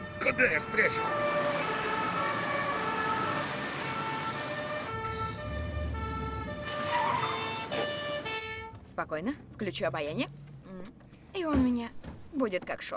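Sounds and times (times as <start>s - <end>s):
police car siren wailing: 0.0s - 8.7s
rumble of a moving road vehicle: 0.0s - 12.9s
speech: 0.3s - 1.4s, 9.0s - 12.9s.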